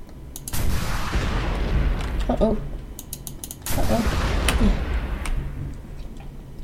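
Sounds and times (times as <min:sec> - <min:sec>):
video game gunfire aimed at a tank: 0:00.5 - 0:05.9
mechanical clatter and creaking: 0:01.5 - 0:03.8, 0:04.4 - 0:06.6.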